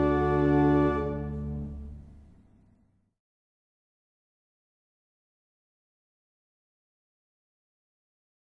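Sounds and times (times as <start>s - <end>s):
barrel organ playing a hymn tune: 0.0s - 2.0s.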